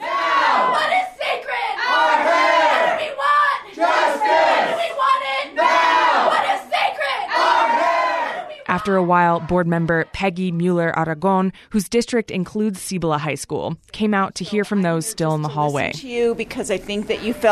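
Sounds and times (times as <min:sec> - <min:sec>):
protesters demonstrating in a tiled hallway: 0:00.0 - 0:10.6
speech: 0:08.8 - 0:17.5.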